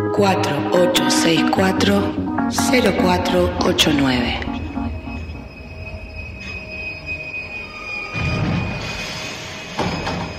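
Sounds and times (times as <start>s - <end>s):
speech: 0.2s - 4.5s
continuous low rumble of rolling subway cars: 2.8s - 10.3s
Line B subway train wheels in Buenos Aires squealing: 3.7s - 10.3s.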